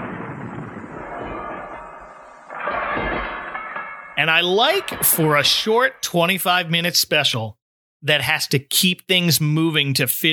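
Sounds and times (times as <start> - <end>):
dense rumbling wash of noise: 0.0 - 6.7
heavy chains dragging and rattling: 1.8 - 6.1
speech: 4.2 - 10.3.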